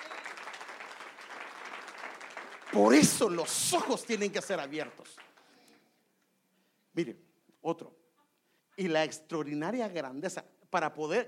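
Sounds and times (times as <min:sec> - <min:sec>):
audience applause: 0:00.0 - 0:05.5
speech: 0:02.7 - 0:05.3, 0:07.0 - 0:08.0, 0:08.8 - 0:11.2.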